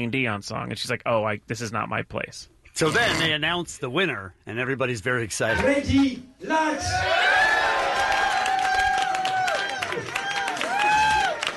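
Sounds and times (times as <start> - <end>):
speech: 0.0 - 7.4
audience applauding: 7.3 - 11.5.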